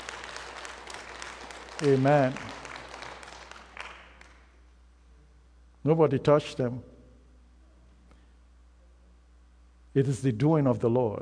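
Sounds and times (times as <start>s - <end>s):
audience clapping: 0.0s - 4.6s
speech: 1.8s - 2.5s, 5.8s - 6.9s, 10.0s - 11.1s.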